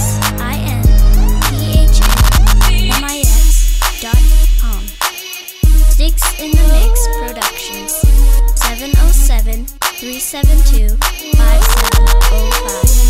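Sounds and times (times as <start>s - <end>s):
heartbeat: 0.0s - 4.9s, 5.6s - 7.0s, 8.0s - 9.4s, 10.4s - 13.0s.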